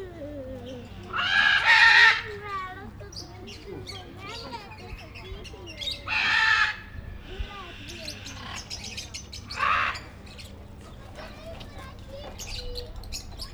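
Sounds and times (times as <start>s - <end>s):
several kinds of captive parrots calling in a zoo: 0.5s - 10.4s.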